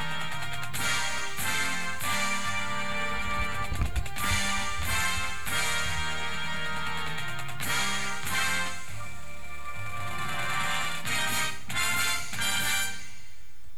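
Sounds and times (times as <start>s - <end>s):
drumline cymbals: 0.0s - 13.5s
music: 0.0s - 13.7s
drumline drumming: 1.2s - 8.3s.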